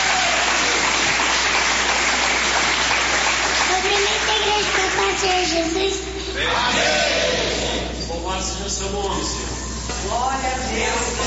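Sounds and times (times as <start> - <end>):
audience applause: 0.0 - 5.6
speech: 5.2 - 7.6, 8.2 - 11.2.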